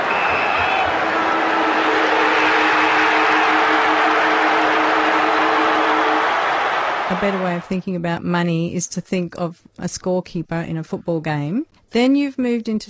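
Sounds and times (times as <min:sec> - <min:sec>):
crowd: 0:00.0 - 0:07.8
speech: 0:07.2 - 0:12.8.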